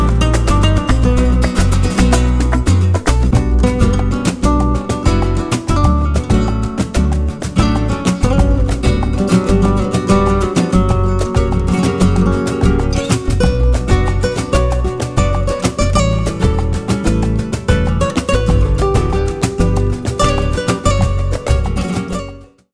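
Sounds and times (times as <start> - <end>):
Latin guitar music: 0.0 - 22.7.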